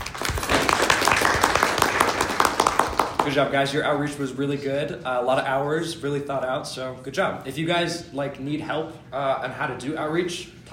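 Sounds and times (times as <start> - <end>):
applause: 0.0 - 3.4
speech: 3.3 - 10.7.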